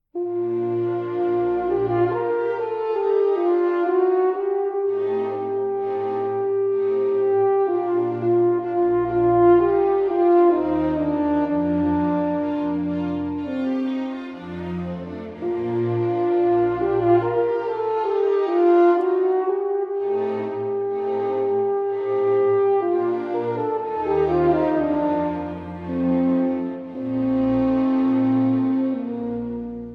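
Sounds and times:
horn and orchestra playing an adagio romance: 0:00.1 - 0:29.9.

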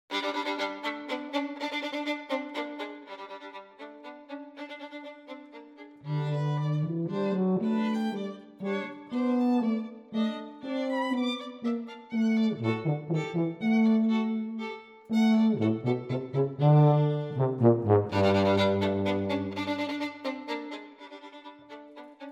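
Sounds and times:
violin playing a moderato Ländler: 0:00.1 - 0:22.3
tuba playing a moderato Ländler: 0:06.1 - 0:09.8, 0:12.2 - 0:19.8.

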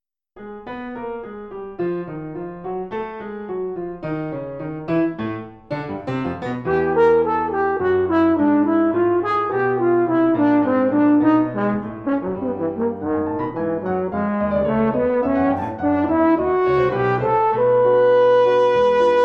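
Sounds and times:
piano: 0:00.3 - 0:19.2
horn: 0:05.7 - 0:19.2.

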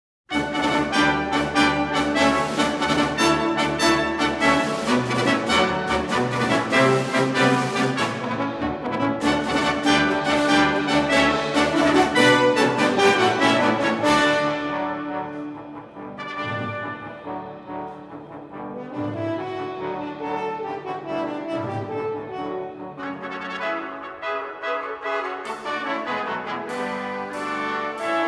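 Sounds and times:
brass symphony: 0:00.3 - 0:28.2.

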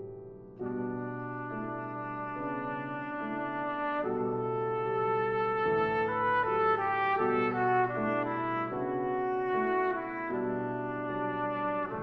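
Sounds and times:
trumpet vocalise: 0:00.7 - 0:12.0.

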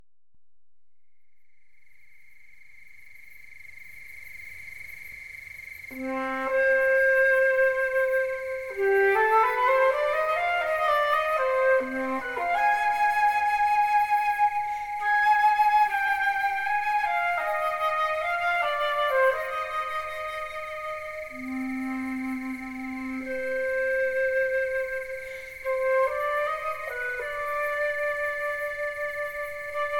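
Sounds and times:
classical prelude in C minor: 0:05.9 - 0:29.9.

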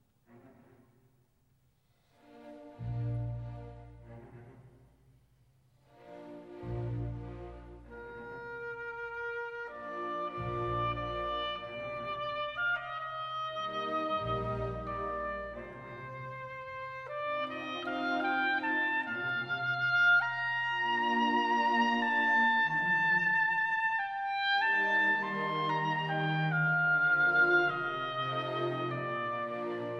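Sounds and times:
oboe concerto andante: 0:06.2 - 0:29.9.

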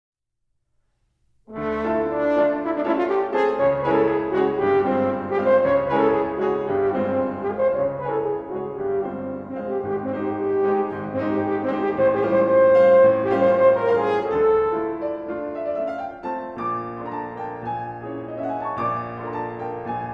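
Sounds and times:
piano: 0:01.4 - 0:20.1
horn playing: 0:01.5 - 0:15.6.

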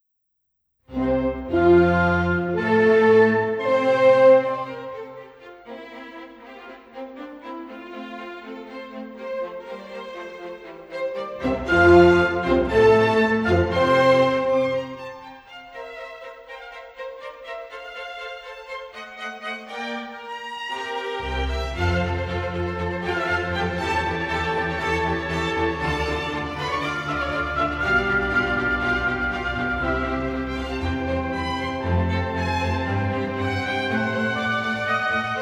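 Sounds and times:
concerto for two horns: 0:00.9 - 0:05.3, 0:11.4 - 0:15.1, 0:20.7 - 0:35.4.

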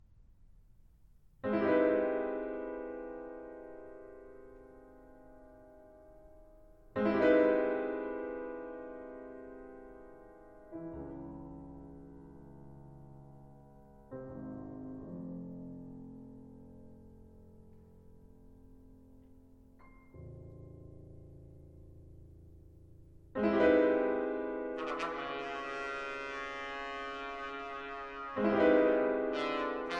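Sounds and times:
piano: 0:00.0 - 0:29.9
trombone: 0:24.8 - 0:29.9.

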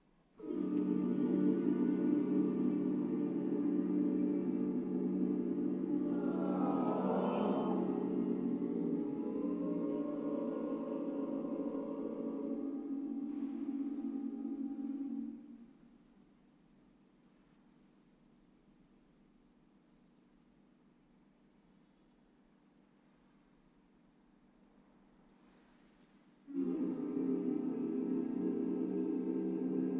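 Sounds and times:
choral music: 0:00.4 - 0:16.0, 0:26.4 - 0:29.9.

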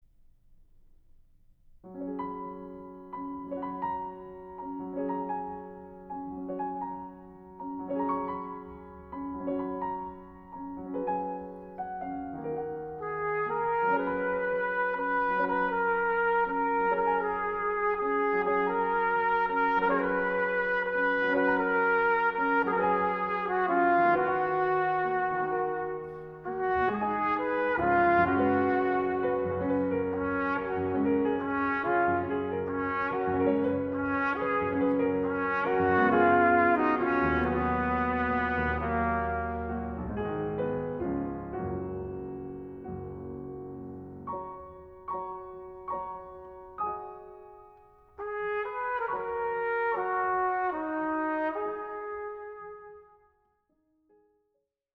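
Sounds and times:
piano playing: 0:00.9 - 0:53.4
trumpet playing: 0:12.4 - 0:41.6, 0:48.2 - 0:53.2.

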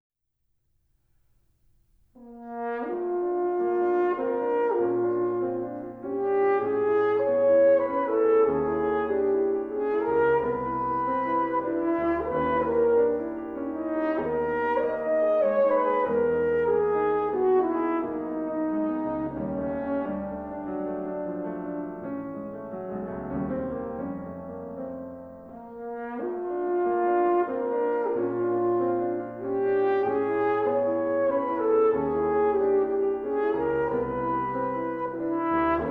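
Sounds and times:
horn and piano sonata: 0:01.7 - 0:35.9.

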